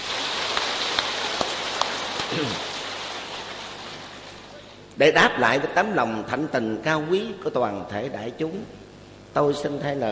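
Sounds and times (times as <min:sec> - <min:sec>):
audience applause: 0:00.0 - 0:04.3
speech: 0:02.3 - 0:02.7, 0:05.0 - 0:10.1.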